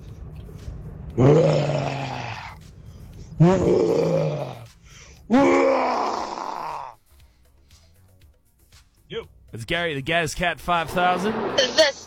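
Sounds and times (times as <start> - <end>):
person imitating a lion roar: 1.2 - 2.6, 3.4 - 4.7, 5.3 - 7.0
speech: 3.4 - 4.3, 9.7 - 12.0.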